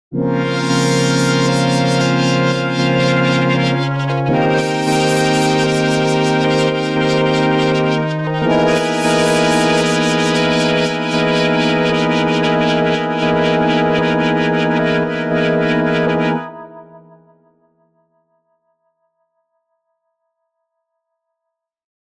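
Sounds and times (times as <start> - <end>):
synth pad: 0.2 - 17.1.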